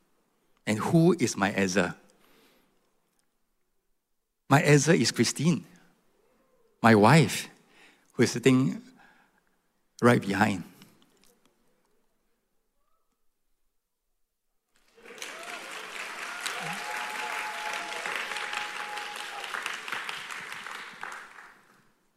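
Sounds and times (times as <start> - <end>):
speech: 0.7 - 2.0, 4.5 - 5.8, 6.8 - 7.5, 8.2 - 8.9, 10.0 - 10.7
audience applause: 14.8 - 21.9.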